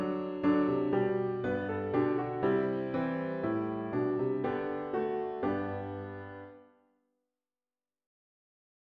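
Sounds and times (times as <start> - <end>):
hymn on piano with intro: 0.0 - 6.6.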